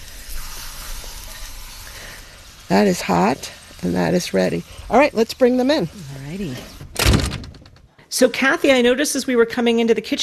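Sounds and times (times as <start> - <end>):
sugar-coated food sizzling on a hot grill: 0.0 - 6.8
speech: 2.7 - 6.7, 8.2 - 10.2.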